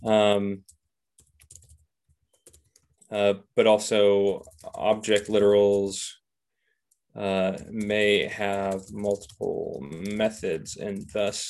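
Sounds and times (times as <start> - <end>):
speech: 0.0 - 0.8, 3.1 - 6.2, 7.2 - 11.4
typing on a computer keyboard while writing a code comment: 0.5 - 3.1, 4.2 - 5.9, 6.9 - 11.4.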